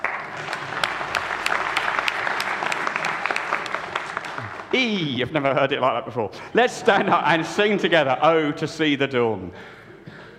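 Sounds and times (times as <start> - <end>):
crowd applauding: 0.0 - 5.2
speech: 4.7 - 9.8.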